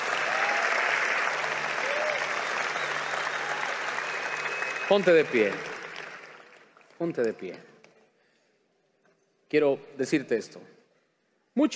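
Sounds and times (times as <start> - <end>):
audience applauding loudly: 0.0 - 7.6
speech: 4.9 - 5.7, 7.0 - 7.7, 9.5 - 10.8, 11.6 - 11.7.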